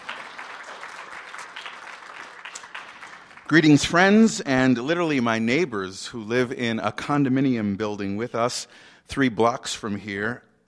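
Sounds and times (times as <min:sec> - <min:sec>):
audience applause: 0:00.0 - 0:04.1
speech: 0:03.5 - 0:10.6.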